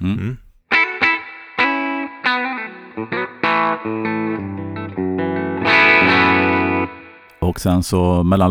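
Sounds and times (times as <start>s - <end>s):
speech: 0.0s - 0.4s, 7.6s - 8.4s
clean electric guitar through humbucker pickups playing picked chords and ringing notes: 0.8s - 7.1s.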